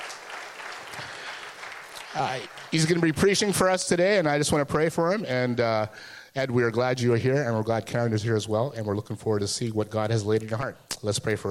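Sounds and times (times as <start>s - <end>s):
audience applause welcoming a guest preacher at Meadowbrook: 0.0s - 3.6s
speech: 2.1s - 11.5s.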